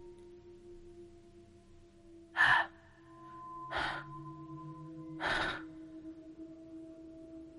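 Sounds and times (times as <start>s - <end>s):
heavy wheezing breath of a hungry beast: 3.6s - 4.2s, 5.2s - 5.8s.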